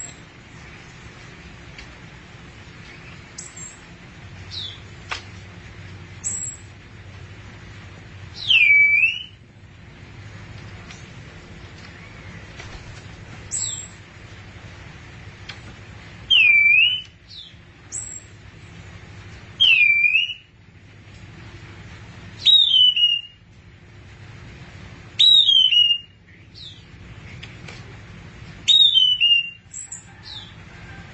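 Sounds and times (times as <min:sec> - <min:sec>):
thrush whistled song: 0:02.9 - 0:03.8, 0:04.5 - 0:04.8, 0:06.2 - 0:06.7, 0:08.3 - 0:09.4, 0:13.5 - 0:14.0, 0:16.3 - 0:18.4, 0:19.6 - 0:20.5, 0:22.4 - 0:23.4, 0:25.2 - 0:26.9, 0:28.6 - 0:30.6.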